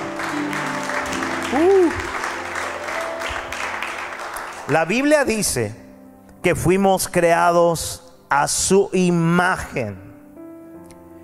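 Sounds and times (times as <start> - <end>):
audience applause: 0.0 - 5.3
speech: 1.5 - 1.8, 4.7 - 5.8, 6.4 - 10.1.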